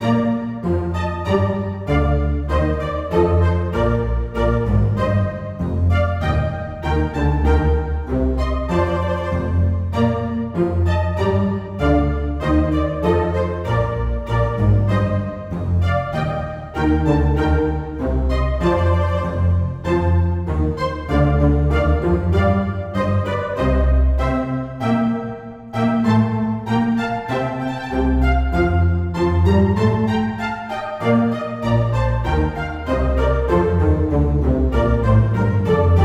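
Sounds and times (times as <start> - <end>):
baroque orchestra playing minuet in C major: 0.0 - 36.0.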